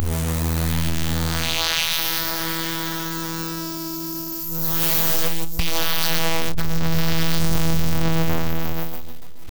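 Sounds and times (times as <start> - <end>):
long buzz: 0.0 - 9.5.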